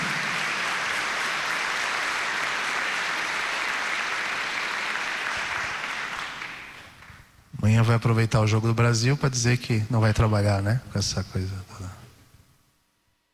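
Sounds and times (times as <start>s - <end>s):
audience applause: 0.0s - 7.3s
speech: 7.6s - 12.0s.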